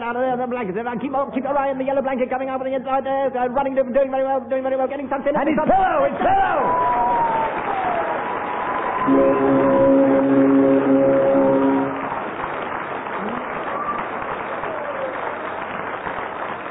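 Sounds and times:
speech: 0.0s - 7.0s, 9.1s - 11.2s
audience applause: 6.0s - 16.7s
buzzy horn-like tone: 9.0s - 12.2s.

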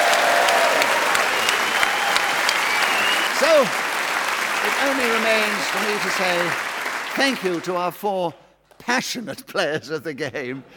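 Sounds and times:
crowd applauding: 0.0s - 8.0s
speech: 3.6s - 3.8s, 4.8s - 10.7s.

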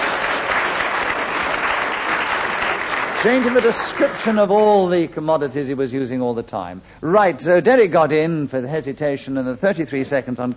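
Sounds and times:
audience applause: 0.0s - 4.5s
speech: 3.2s - 10.5s.

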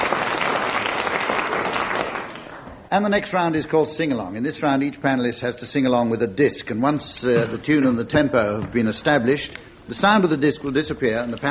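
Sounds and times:
audience applause: 0.0s - 2.7s
speech: 2.9s - 11.5s.

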